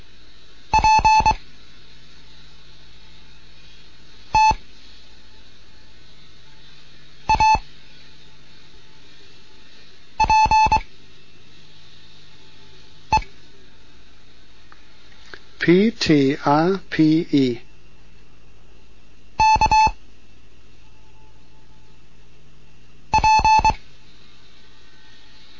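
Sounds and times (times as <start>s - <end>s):
Morse code practice tones: 0.7s - 1.4s, 4.4s - 4.6s, 7.3s - 7.6s, 10.2s - 10.8s, 19.4s - 20.0s, 23.1s - 23.8s
speech: 15.7s - 17.6s.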